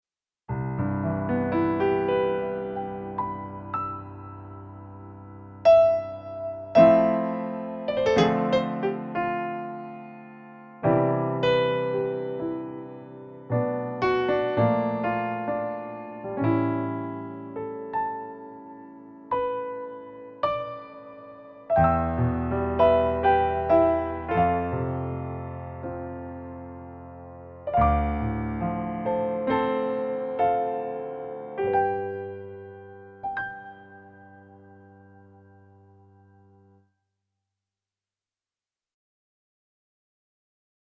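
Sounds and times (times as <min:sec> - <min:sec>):
Yamaha YC88 C7 piano: 0:00.5 - 0:37.0.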